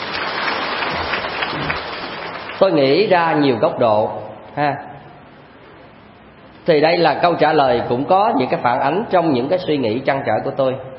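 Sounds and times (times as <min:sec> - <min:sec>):
group applauding: 0:00.0 - 0:02.7
speech: 0:02.6 - 0:04.9, 0:06.6 - 0:10.9.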